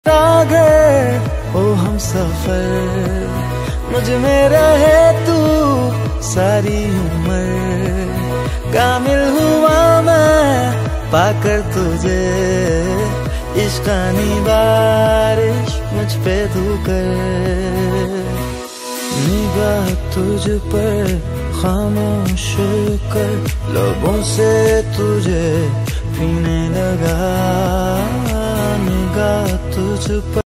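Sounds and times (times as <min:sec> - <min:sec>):
romantic song ringtone: 0:00.0 - 0:30.4.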